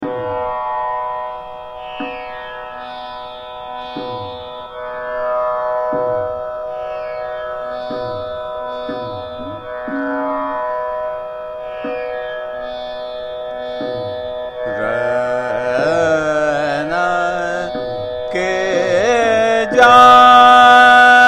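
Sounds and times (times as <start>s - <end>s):
sadra vocal music in slow jhaptal: 14.0s - 21.2s.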